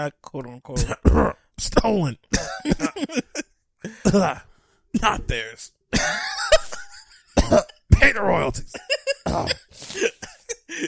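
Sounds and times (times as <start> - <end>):
speech: 0.0 - 6.3, 7.5 - 10.8
cough: 0.8 - 3.0, 4.0 - 4.4, 5.9 - 6.7, 7.4 - 10.6.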